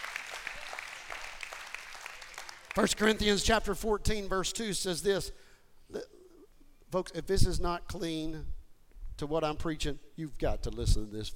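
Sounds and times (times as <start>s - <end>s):
audience hand clapping: 0.0s - 3.2s
speech: 2.8s - 6.0s, 6.9s - 8.5s, 9.2s - 11.3s.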